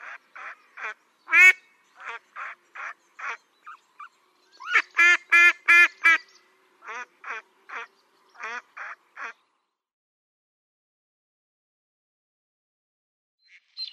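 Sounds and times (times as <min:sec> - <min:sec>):
female mallards quacking: 0:00.0 - 0:09.4.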